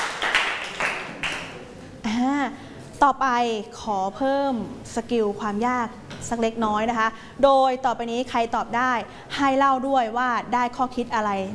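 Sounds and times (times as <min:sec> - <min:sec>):
students clapping for a classmate: 0:00.0 - 0:01.7
speech: 0:03.0 - 0:11.5.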